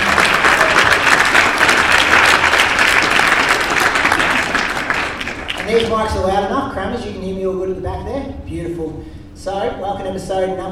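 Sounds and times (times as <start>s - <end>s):
crowd clapping: 0.0s - 6.1s
speech: 5.9s - 10.7s.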